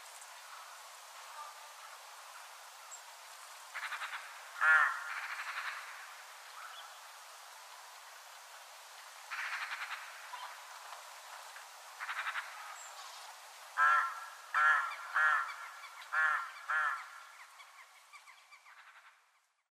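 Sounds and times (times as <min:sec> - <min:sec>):
crow cawing in a village in winter: 0:03.8 - 0:06.8, 0:09.3 - 0:10.6, 0:12.0 - 0:12.8, 0:13.8 - 0:17.4.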